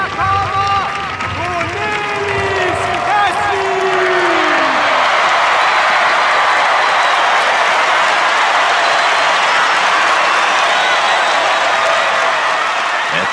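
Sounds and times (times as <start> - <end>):
young festival crowd cheering and applauding: 0.0 - 13.3
whoops and shouts: 1.4 - 13.3.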